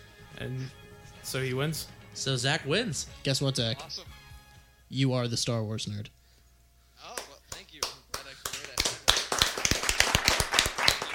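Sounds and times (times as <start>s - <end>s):
speech: 0.4s - 4.2s, 4.9s - 6.2s
golf clap: 7.1s - 11.1s.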